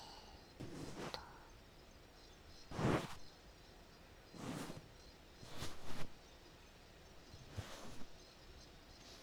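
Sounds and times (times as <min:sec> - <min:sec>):
oil massage sounds in the right ear: 0:00.6 - 0:01.4, 0:02.7 - 0:03.2, 0:04.4 - 0:04.9, 0:05.4 - 0:06.2, 0:07.4 - 0:08.2.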